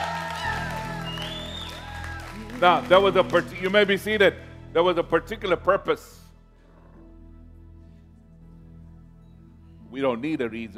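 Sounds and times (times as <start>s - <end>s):
audience clapping: 0.0s - 4.4s
speech: 2.6s - 6.2s, 9.9s - 10.7s.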